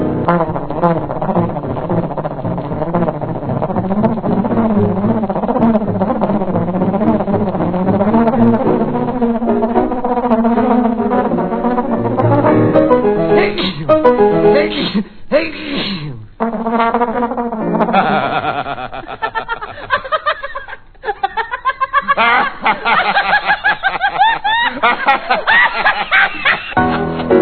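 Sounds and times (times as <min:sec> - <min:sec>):
comic old-time band record with fast frantic buzzing melody: 0:00.2 - 0:14.8, 0:16.4 - 0:18.3
sneeze-like bursts: 0:13.4 - 0:13.9, 0:14.7 - 0:16.2
laughing: 0:17.9 - 0:27.2.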